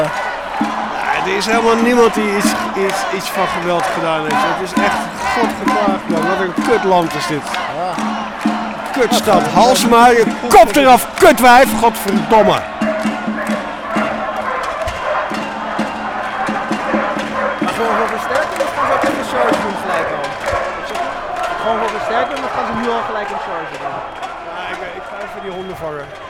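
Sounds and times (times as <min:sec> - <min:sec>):
loud steady din of the crowd at a university occupation at Roeterseiland: 0:00.0 - 0:26.2
people shouting and talking: 0:00.0 - 0:26.2
speech: 0:00.6 - 0:08.2, 0:09.0 - 0:12.7, 0:21.7 - 0:24.2, 0:25.4 - 0:26.2
dogs set on protesters barking: 0:12.8 - 0:17.7.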